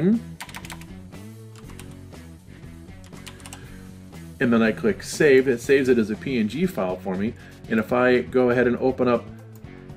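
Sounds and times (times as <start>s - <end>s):
speech: 0.0s - 0.3s, 4.4s - 9.4s
typing a street address on a computer keyboard: 0.4s - 0.9s, 1.6s - 2.0s, 3.0s - 3.7s.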